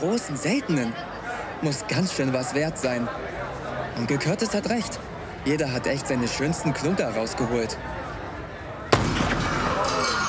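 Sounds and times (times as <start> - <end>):
speech: 0.0 - 3.4, 4.0 - 8.0
gunshot: 8.9 - 10.1.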